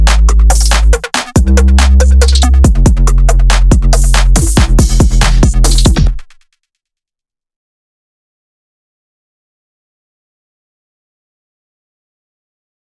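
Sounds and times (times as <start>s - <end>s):
trap beat intro music: 0.0s - 6.4s.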